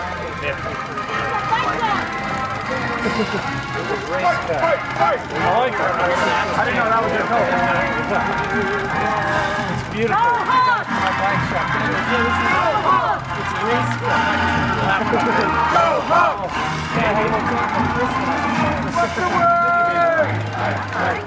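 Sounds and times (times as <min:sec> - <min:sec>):
crowd of bike riders chattering and calling out: 0:00.0 - 0:21.2
laughter: 0:00.0 - 0:21.2
speech: 0:03.1 - 0:21.2.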